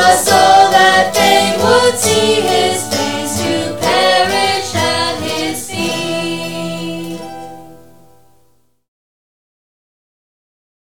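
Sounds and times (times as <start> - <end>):
gospel music: 0.0 - 8.6.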